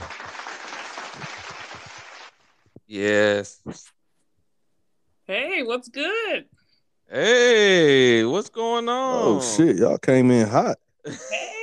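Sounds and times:
applause: 0.0 - 2.6
quiet noise: 0.0 - 11.6
speech: 2.9 - 4.0, 5.3 - 11.6.

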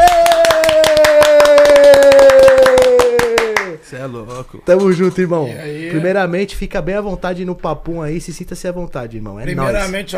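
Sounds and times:
audience clapping: 0.0 - 3.8
speech: 4.4 - 10.1.

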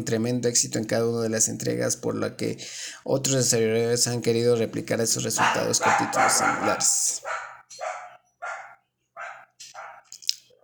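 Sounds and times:
speech: 0.0 - 7.3
small dog barking: 5.4 - 10.1.

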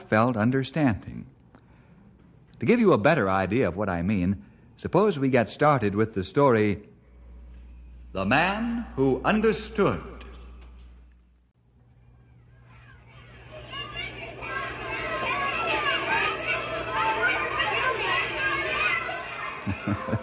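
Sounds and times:
speech: 0.1 - 1.4, 2.6 - 6.9, 8.1 - 10.1
children shouting and laughing coming home from school: 12.0 - 20.2.

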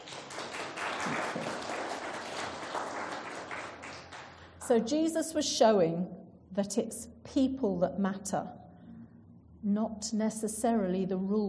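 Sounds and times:
audience clapping: 0.0 - 4.6
speech: 4.7 - 8.6, 9.6 - 11.4.

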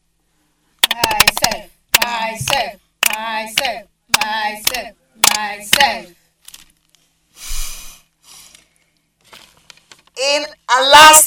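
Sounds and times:
hands clapping: 0.8 - 6.0
speech: 1.0 - 6.2, 10.2 - 11.2.

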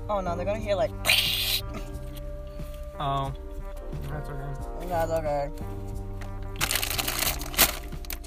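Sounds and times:
speech: 0.1 - 2.0, 3.0 - 6.0
bag being ripped open: 6.5 - 8.2.

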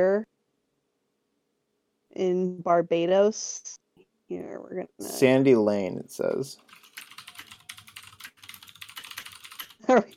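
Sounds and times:
speech: 0.0 - 0.3, 2.2 - 6.8, 9.8 - 10.1
typing on a computer keyboard: 6.6 - 10.1.

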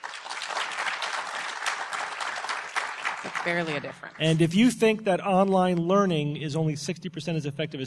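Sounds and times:
audience applause as a vote: 0.0 - 4.4
speech: 3.4 - 7.8.

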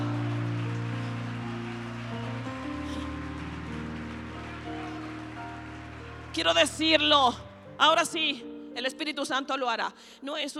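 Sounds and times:
audience applause: 0.0 - 7.5
speech: 6.4 - 10.5.

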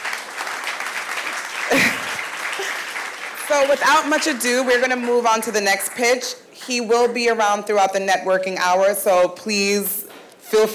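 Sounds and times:
audience applause: 0.0 - 6.3
speech: 3.5 - 10.7.

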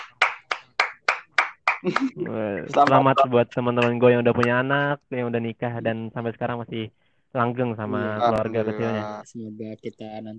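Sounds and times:
hand clapping: 0.0 - 4.6
speech: 1.8 - 10.3.

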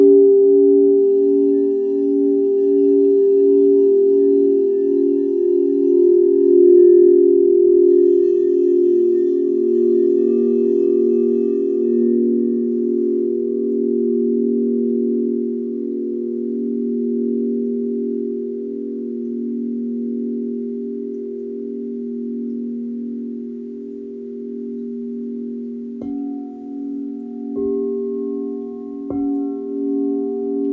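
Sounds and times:
singing bowl humming a low pulsing tone: 0.0 - 30.7.

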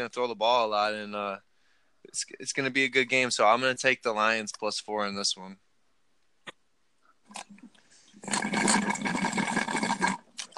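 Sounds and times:
speech: 0.0 - 5.6, 8.2 - 9.2
person slurping Kool-Aid: 7.3 - 10.5.

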